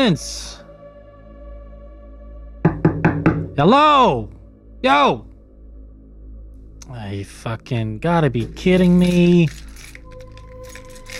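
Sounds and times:
speech: 0:00.0 - 0:00.6, 0:03.6 - 0:05.3, 0:06.9 - 0:09.6
bunch of keys jangling: 0:08.4 - 0:11.1.

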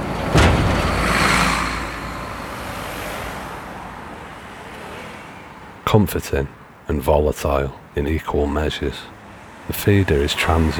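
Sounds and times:
car whooshing by: 0:00.0 - 0:05.6
steady road traffic noise: 0:00.0 - 0:10.7
speech: 0:05.9 - 0:10.7.

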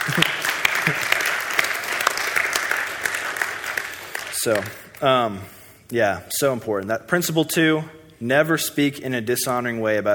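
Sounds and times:
laughter: 0:00.0 - 0:01.4
audience applause: 0:00.0 - 0:04.8
speech: 0:04.4 - 0:10.1.

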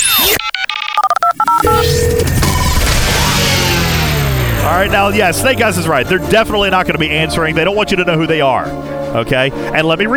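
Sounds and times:
noisy static: 0:00.0 - 0:07.0
telephone number dialed with touch-tone beeps: 0:00.0 - 0:07.0
steady tone: 0:01.0 - 0:08.3
speech: 0:04.8 - 0:10.1.

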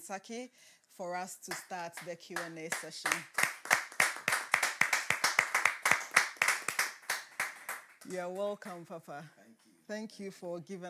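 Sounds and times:
speech: 0:00.1 - 0:03.5, 0:08.0 - 0:10.8
rhythmic hand clapping welcoming a bishop: 0:01.5 - 0:08.8.

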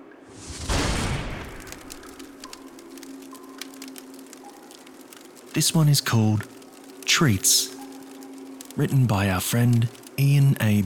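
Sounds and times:
fire crackling as it gets going: 0:00.0 - 0:10.8
fire catching with a soft whooshing rush: 0:00.3 - 0:04.4
speech: 0:05.6 - 0:06.6, 0:07.2 - 0:07.8, 0:08.8 - 0:10.8.

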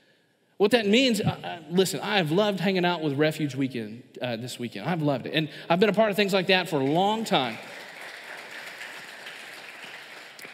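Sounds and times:
speech: 0:00.6 - 0:07.8
audience clapping: 0:06.2 - 0:10.5.

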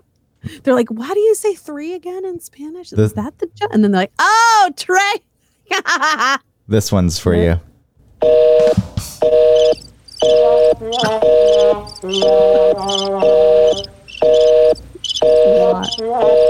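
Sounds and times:
speech: 0:00.5 - 0:14.5, 0:15.4 - 0:16.4
artificial cricket chirping from a mixer preset: 0:09.2 - 0:16.4.

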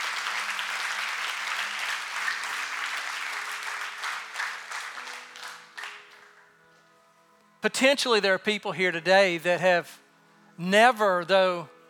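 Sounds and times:
audience clapping: 0:00.0 - 0:06.4
speech: 0:07.6 - 0:10.0, 0:10.6 - 0:11.8.

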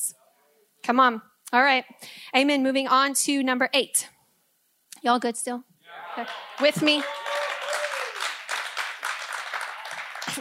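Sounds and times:
speech: 0:00.8 - 0:04.2, 0:05.0 - 0:07.2
audience cheering and applauding: 0:05.9 - 0:10.4.

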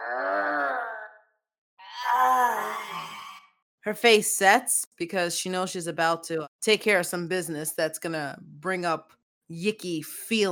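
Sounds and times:
voice imitating a growl: 0:00.0 - 0:03.4
speech: 0:03.9 - 0:10.5.

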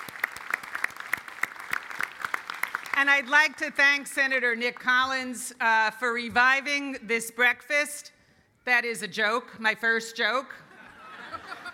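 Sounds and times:
audience applause: 0:00.0 - 0:03.0
speech: 0:03.0 - 0:10.6
laughter: 0:10.6 - 0:11.7.

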